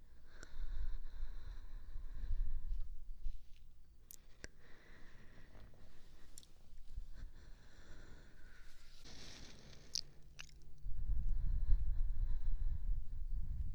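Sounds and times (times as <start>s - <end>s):
slow breathing: 0.1s - 3.4s, 4.4s - 13.6s
ear licking: 9.0s - 10.7s.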